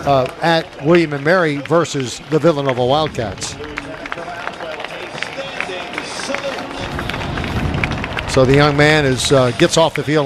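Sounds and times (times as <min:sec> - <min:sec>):
speech: 0:00.0 - 0:03.7, 0:08.4 - 0:10.2
stadium crowd applause: 0:00.0 - 0:10.2.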